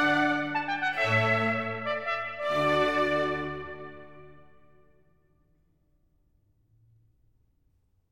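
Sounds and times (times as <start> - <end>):
overture: 0.0 - 4.7.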